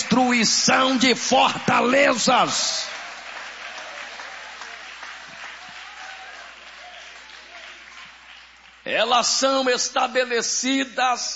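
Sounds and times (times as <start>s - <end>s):
speech: 0.2s - 3.0s, 8.9s - 11.3s
audience clapping: 0.8s - 9.6s.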